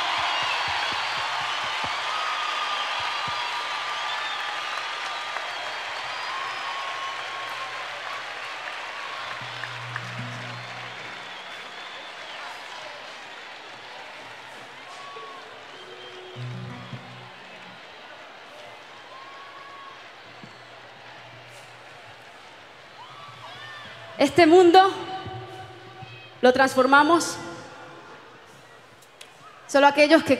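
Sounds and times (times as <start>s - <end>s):
large crowd applause: 0.0s - 29.7s
low hums and murmurs: 7.0s - 24.2s
speech: 24.2s - 25.0s, 26.4s - 27.5s, 29.7s - 30.3s.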